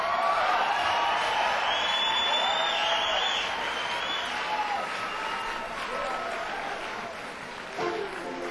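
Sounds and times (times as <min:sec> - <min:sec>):
audience whoops and shouts at a live concert: 0:00.0 - 0:06.8
audience applause for a drummer from Havana, Cuba at a live concert: 0:00.0 - 0:08.4.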